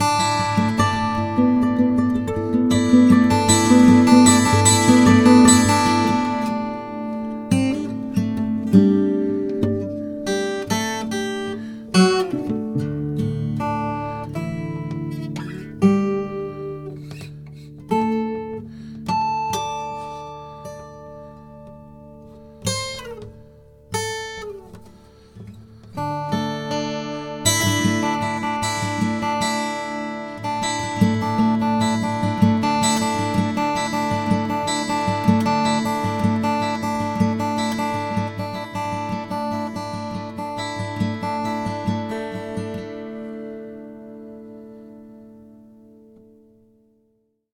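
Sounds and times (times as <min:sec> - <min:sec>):
guitar note E: 0:00.0 - 0:46.7.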